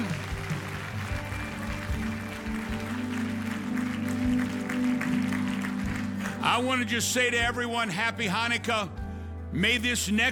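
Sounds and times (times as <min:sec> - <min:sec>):
audience applause: 0:00.0 - 0:06.9
speech: 0:06.5 - 0:10.3.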